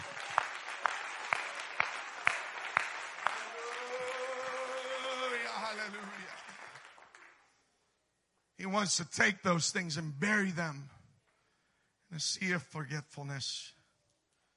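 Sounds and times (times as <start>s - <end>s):
crowd cheering: 0.0s - 7.4s
audience clapping hands in praise: 0.0s - 7.7s
sustained voice: 3.3s - 6.5s
speech: 8.8s - 11.0s, 12.2s - 13.8s.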